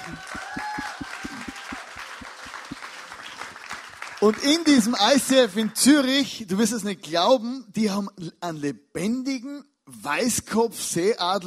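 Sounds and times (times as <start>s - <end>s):
audience applause: 0.0s - 5.8s
speech: 4.2s - 11.4s.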